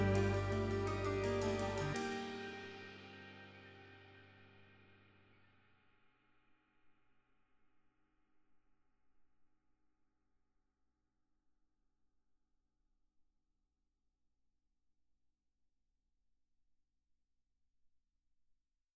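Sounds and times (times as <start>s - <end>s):
ride cymbal: 0.0s - 3.1s.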